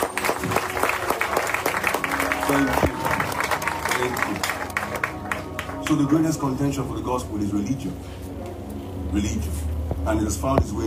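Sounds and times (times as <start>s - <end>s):
audience clapping: 0.0s - 6.4s
speech: 2.5s - 2.9s, 4.0s - 4.6s, 5.9s - 8.3s, 9.1s - 10.8s.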